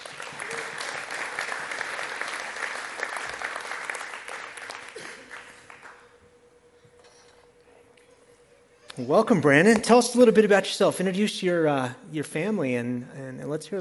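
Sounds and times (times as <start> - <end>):
audience applause: 0.0 - 6.3
speech: 9.0 - 13.7.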